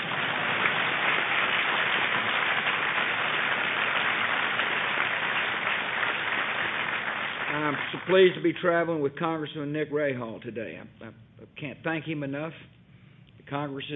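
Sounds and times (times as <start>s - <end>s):
crowd applause: 0.0s - 8.4s
speech: 7.9s - 12.8s, 13.5s - 13.9s.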